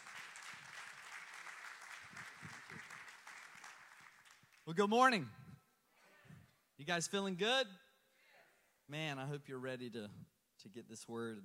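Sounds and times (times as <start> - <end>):
audience applause: 0.0 - 4.6
speech: 4.7 - 5.4, 6.9 - 7.8, 8.9 - 11.4.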